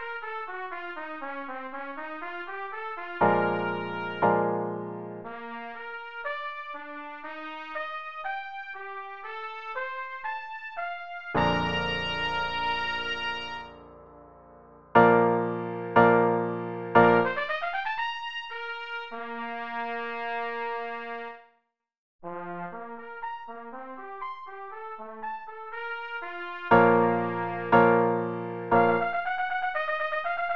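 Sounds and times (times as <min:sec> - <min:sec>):
trumpet cadenza: 0:02.0 - 0:08.0, 0:11.3 - 0:13.9, 0:15.1 - 0:21.3, 0:22.2 - 0:30.4.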